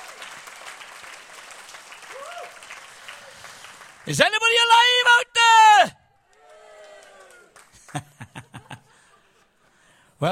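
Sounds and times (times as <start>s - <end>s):
audience clapping: 0.0s - 5.1s, 6.3s - 8.9s
speech: 4.1s - 5.2s, 10.2s - 10.3s
laughter: 7.8s - 9.7s.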